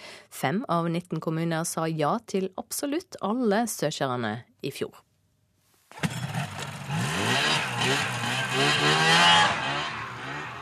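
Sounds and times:
speech: 0.4 - 5.0, 7.8 - 9.6
snowmobile engine revving and driving in Finnmark: 5.9 - 10.6.

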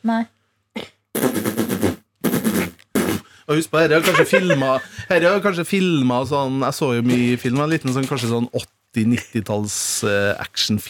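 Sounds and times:
speech: 0.0 - 0.9, 3.5 - 10.8
vocal imitation of machine gun fire: 1.2 - 3.2
laughter: 4.0 - 5.3.

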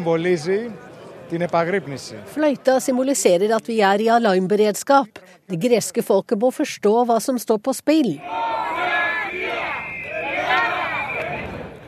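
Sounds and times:
speech: 0.0 - 8.5
crowd of demonstrators outside parliament: 8.2 - 11.8.

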